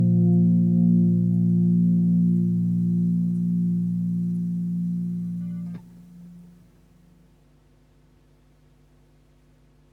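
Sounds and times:
chilled music mix: 0:00.0 - 0:05.8.

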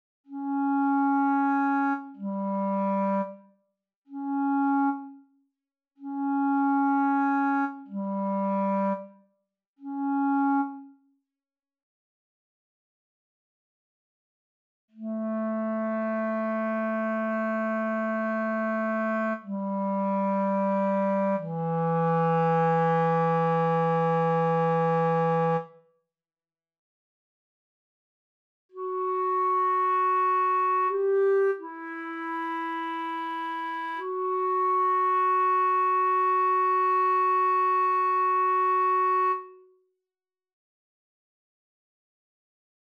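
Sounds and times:
clarinet: 0:00.3 - 0:03.5, 0:04.1 - 0:05.3, 0:06.0 - 0:09.2, 0:09.8 - 0:11.0, 0:15.0 - 0:25.8, 0:28.7 - 0:39.8.

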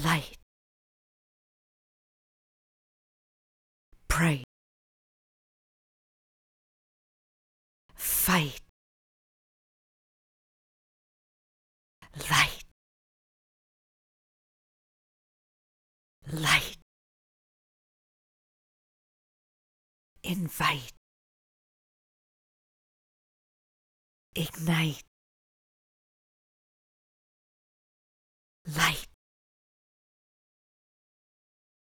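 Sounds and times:
vocal stems: 0:00.0 - 0:00.4, 0:04.0 - 0:04.5, 0:08.0 - 0:08.7, 0:12.0 - 0:12.7, 0:16.2 - 0:16.8, 0:20.2 - 0:21.0, 0:24.4 - 0:25.1, 0:28.7 - 0:29.2.

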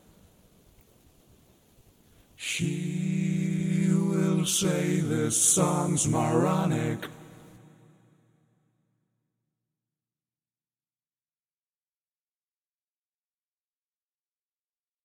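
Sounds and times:
histrionic vocals: 0:02.4 - 0:08.2.

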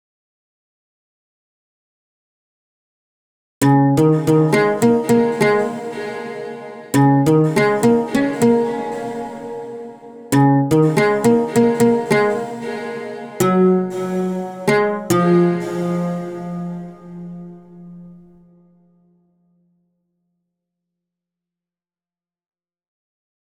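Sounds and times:
folk music: 0:03.6 - 0:18.4.

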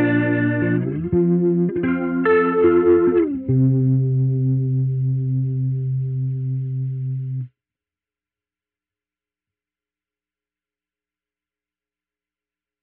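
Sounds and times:
tremolo guitar: 0:00.0 - 0:07.5.

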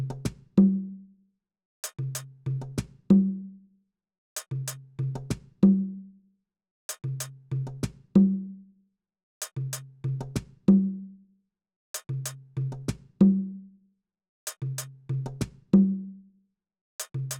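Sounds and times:
percussion: 0:00.0 - 0:01.0, 0:01.8 - 0:03.5, 0:04.4 - 0:06.0, 0:06.9 - 0:08.5, 0:09.4 - 0:11.1, 0:12.0 - 0:13.6, 0:14.5 - 0:16.2, 0:17.0 - 0:17.3.

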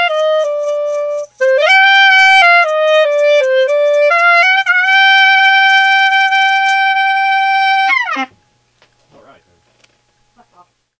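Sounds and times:
clarinet: 0:00.0 - 0:08.4.

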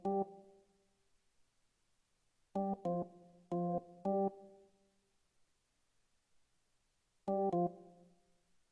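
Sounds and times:
R&B piano music: 0:00.0 - 0:00.3, 0:02.6 - 0:04.4, 0:07.3 - 0:07.8.

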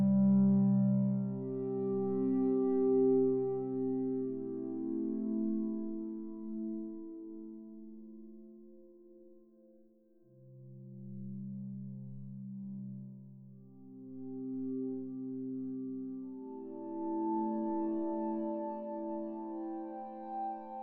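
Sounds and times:
woodwind pad ambience: 0:00.0 - 0:07.6, 0:13.9 - 0:20.8.

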